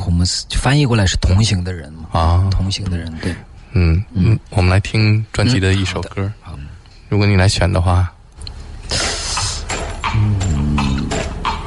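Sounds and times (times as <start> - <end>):
speech: 0.2 - 8.2, 8.9 - 9.1, 10.1 - 10.4
recorded horse hoofbeats opening a song: 9.4 - 11.6.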